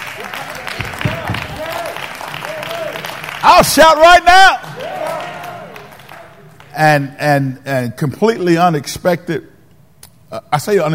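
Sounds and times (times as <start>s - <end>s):
audience clapping: 0.0s - 7.0s
speech: 3.5s - 4.7s, 6.8s - 9.5s, 10.3s - 10.9s.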